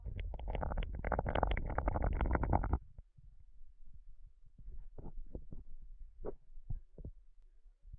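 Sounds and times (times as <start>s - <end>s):
person sipping mate: 0.3s - 2.8s.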